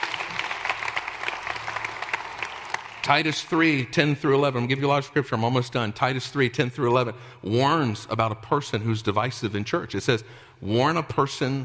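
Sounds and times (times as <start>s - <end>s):
church congregation clapping in praise during a worship service: 0.0s - 3.8s
speech: 3.0s - 11.6s.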